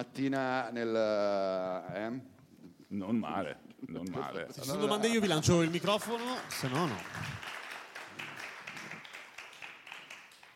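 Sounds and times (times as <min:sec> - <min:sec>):
speech: 0:00.0 - 0:07.5
audience applause: 0:05.2 - 0:10.5.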